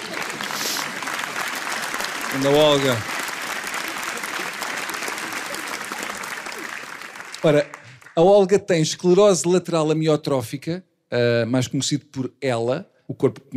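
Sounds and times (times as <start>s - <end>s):
audience applause: 0.0s - 8.5s
speech: 2.3s - 3.1s, 7.4s - 13.5s.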